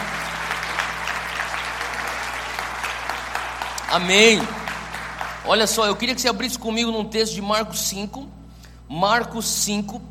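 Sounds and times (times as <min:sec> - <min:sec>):
audience applause: 0:00.0 - 0:06.2
speech: 0:03.9 - 0:04.6, 0:05.5 - 0:10.1.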